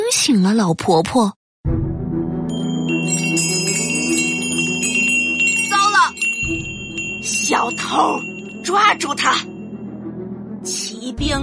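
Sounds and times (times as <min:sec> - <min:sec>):
speech: 0:00.1 - 0:01.8, 0:07.5 - 0:09.5, 0:10.6 - 0:11.4
small bells on a crystal birdcage jingling: 0:02.5 - 0:09.7
sustained resonant musical tone: 0:02.5 - 0:10.7.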